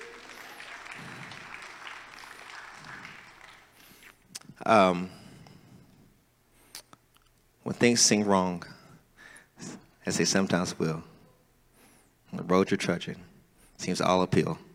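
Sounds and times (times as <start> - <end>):
crowd cheering: 0.0 - 4.0
audience clapping hands: 0.0 - 4.2
speech: 4.6 - 5.2, 7.8 - 8.8, 10.1 - 11.1, 12.5 - 14.7.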